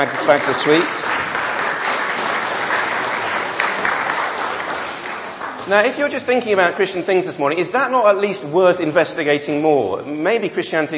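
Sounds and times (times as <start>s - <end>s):
speech: 0.0s - 1.4s, 5.7s - 10.9s
audience applause: 0.0s - 6.8s.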